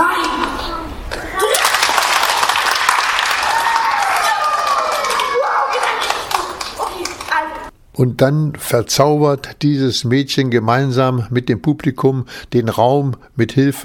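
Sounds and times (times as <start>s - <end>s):
crowd clapping together: 1.4s - 7.7s
speech: 8.0s - 13.8s.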